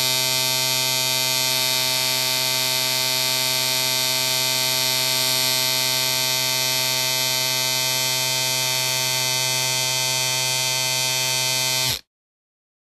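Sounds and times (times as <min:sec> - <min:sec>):
electric shaver: 0:00.0 - 0:12.1.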